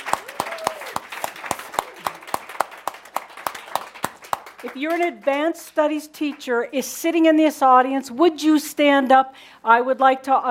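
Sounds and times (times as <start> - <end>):
audience applause for the Crimson Circle helpers: 0.0 - 5.5
speech: 4.6 - 10.4.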